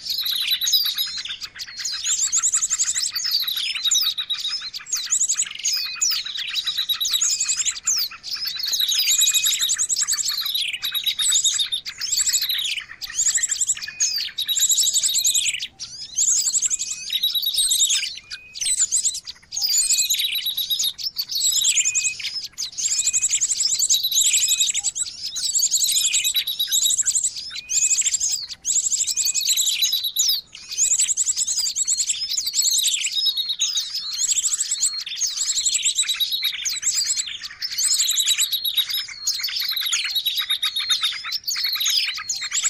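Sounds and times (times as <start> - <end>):
birds chirping and trilling: 0.0 - 42.6.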